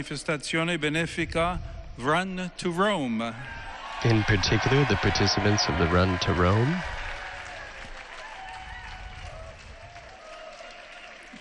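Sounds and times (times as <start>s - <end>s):
speech: 0.0s - 7.0s
crowd applauding in a square: 3.8s - 11.4s.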